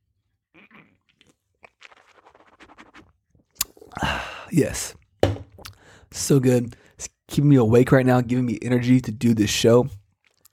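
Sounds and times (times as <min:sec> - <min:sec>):
person sipping an energy drink: 0:00.6 - 0:04.2
speech: 0:04.0 - 0:05.0, 0:06.1 - 0:10.0.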